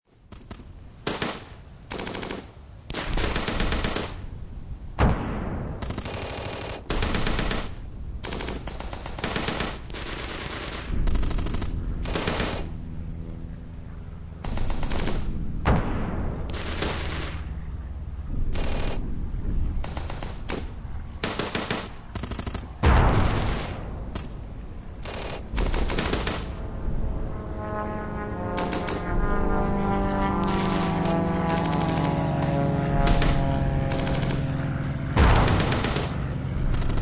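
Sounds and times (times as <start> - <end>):
planes over a World War Two forest battlefield: 0.2 - 37.0
distant explosions on a World War Two forest battlefield: 4.9 - 12.9, 14.4 - 37.0.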